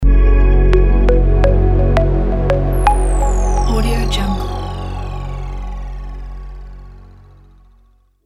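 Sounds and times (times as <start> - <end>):
elegant logo jingle: 0.6 - 6.6.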